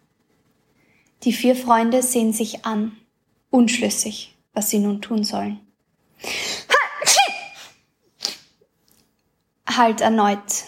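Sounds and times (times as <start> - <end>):
speech: 1.2 - 6.5, 9.8 - 10.6
loud sneeze: 6.4 - 8.6
quieter sniff: 7.6 - 8.6.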